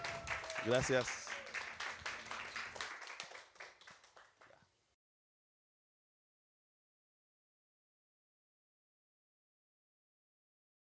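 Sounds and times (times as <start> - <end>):
audience applause: 0.0 - 4.6
speech: 0.6 - 1.2.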